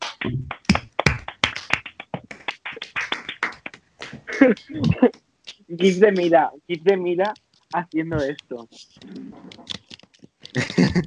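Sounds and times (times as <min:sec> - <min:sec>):
speech: 0:00.2 - 0:00.6, 0:04.1 - 0:09.2, 0:10.6 - 0:11.0
applause: 0:00.6 - 0:03.7
laughter: 0:10.6 - 0:11.0.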